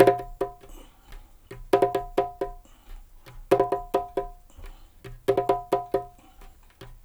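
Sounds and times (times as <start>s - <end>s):
dub percussion loops: 0.0s - 0.8s, 1.5s - 6.2s.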